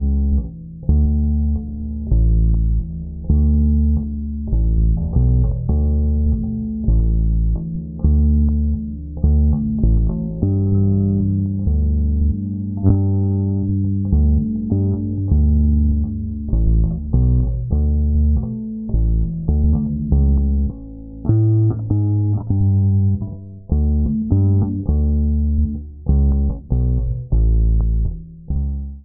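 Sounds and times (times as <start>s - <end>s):
bass: 0.0s - 29.0s.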